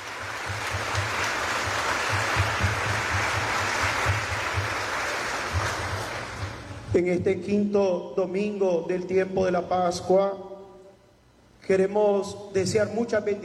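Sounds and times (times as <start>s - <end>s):
audience applause: 0.0s - 6.8s
speech: 7.0s - 10.5s, 11.7s - 13.4s.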